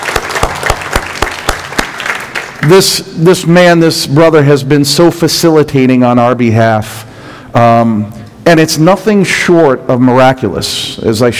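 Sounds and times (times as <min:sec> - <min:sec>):
audience applause: 0:00.0 - 0:02.7
speech: 0:02.6 - 0:11.3.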